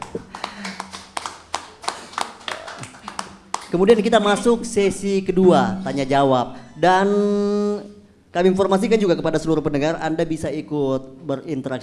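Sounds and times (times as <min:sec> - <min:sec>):
small group applauding four panel speakers at an election-oversight media gathering: 0:00.0 - 0:04.0
speech: 0:03.7 - 0:11.8.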